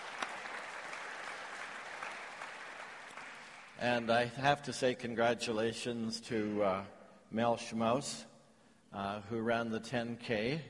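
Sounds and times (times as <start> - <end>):
audience applauding a fundraising success: 0.0 - 3.8
speech: 3.8 - 8.3, 8.9 - 10.6.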